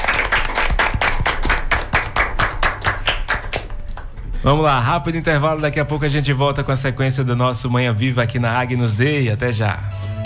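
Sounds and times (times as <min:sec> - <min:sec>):
small group clapping in an even beat: 0:00.0 - 0:04.4
speech: 0:04.4 - 0:10.1.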